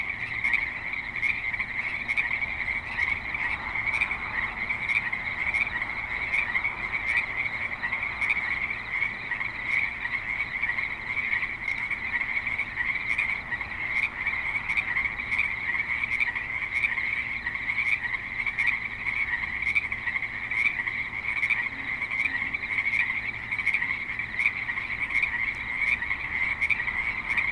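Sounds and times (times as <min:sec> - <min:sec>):
frogs croaking: 0:00.0 - 0:27.5.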